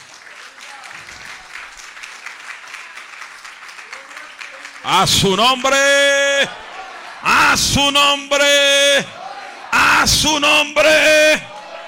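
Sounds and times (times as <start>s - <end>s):
loud audience applause: 0.0s - 7.7s
speech: 4.8s - 6.6s, 7.5s - 9.2s, 10.0s - 11.5s.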